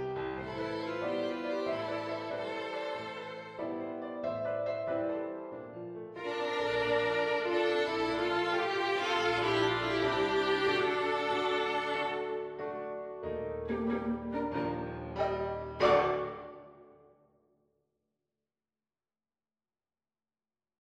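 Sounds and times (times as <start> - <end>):
violin duet: 0.0 - 4.4, 6.2 - 16.9.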